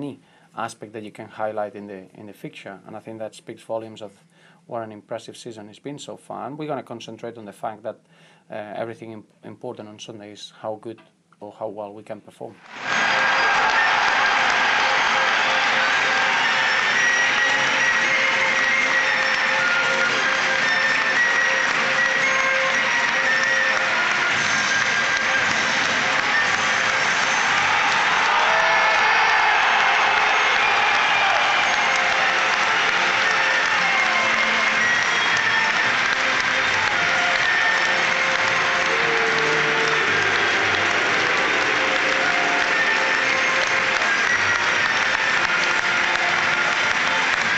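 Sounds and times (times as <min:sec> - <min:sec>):
speech: 0:00.0 - 0:13.6
stadium crowd at an Everton home football match cheering and clapping: 0:12.6 - 0:47.5.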